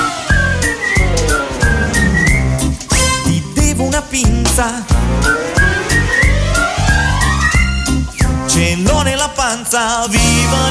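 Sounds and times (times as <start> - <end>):
person whistling a bright tune: 0.0 - 3.1, 5.2 - 7.9
rhythmic musical backing: 0.0 - 10.6
speech: 4.6 - 4.9, 8.7 - 10.6.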